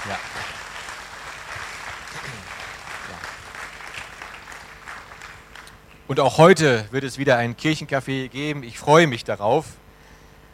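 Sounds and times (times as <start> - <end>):
audience applause: 0.0 - 5.8
speech: 0.1 - 0.6, 6.1 - 9.8.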